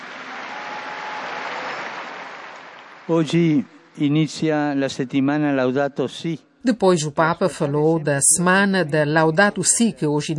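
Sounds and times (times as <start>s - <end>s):
crowd applause: 0.0s - 4.0s
speech: 3.1s - 10.3s.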